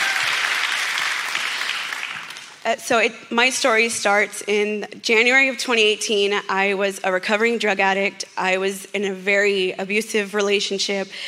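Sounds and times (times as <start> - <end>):
audience applause: 0.0 - 2.6
speech: 2.6 - 11.2.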